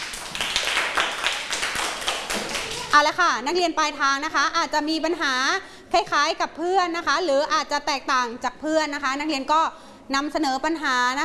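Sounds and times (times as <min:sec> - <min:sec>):
students in a classroom clapping for a classmate: 0:00.0 - 0:03.0
speech: 0:03.0 - 0:11.2.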